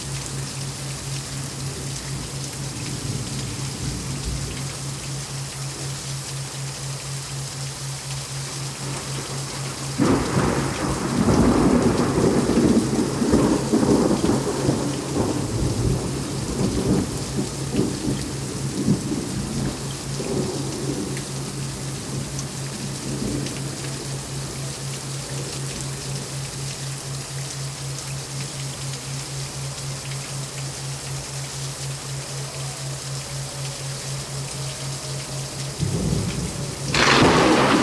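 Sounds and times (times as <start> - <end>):
thundering rainstorm: 0.0 - 37.8
thunder in a rainstorm: 10.0 - 18.1, 35.8 - 37.8.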